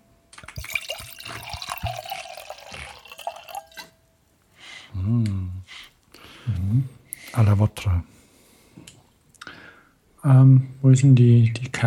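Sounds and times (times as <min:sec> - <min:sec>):
drink pouring into a glass: 0:00.4 - 0:04.0
speech: 0:07.4 - 0:08.1, 0:10.2 - 0:11.8.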